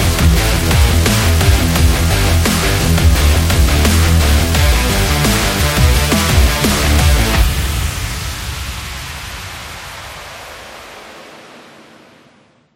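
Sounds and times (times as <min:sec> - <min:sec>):
heroic music: 0:00.0 - 0:07.8.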